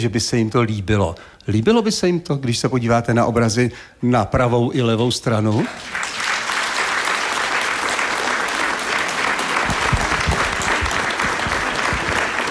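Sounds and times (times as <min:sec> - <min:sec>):
speech: 0:00.0 - 0:06.1
audience applause: 0:05.7 - 0:12.4.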